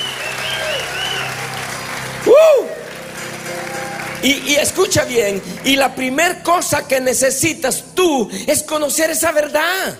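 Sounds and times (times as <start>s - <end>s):
audience applause: 0.0s - 6.2s
speech: 4.2s - 9.9s.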